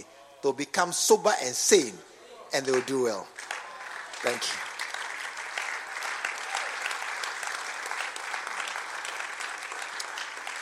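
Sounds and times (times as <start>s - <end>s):
speech: 0.0s - 3.5s, 4.2s - 4.6s
audience clapping: 2.6s - 10.5s.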